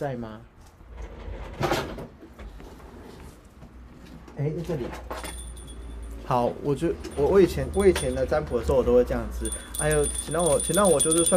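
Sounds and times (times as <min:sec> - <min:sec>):
speech: 0:00.0 - 0:00.5, 0:04.4 - 0:05.2, 0:06.3 - 0:11.3
drawer sliding open: 0:01.0 - 0:02.1.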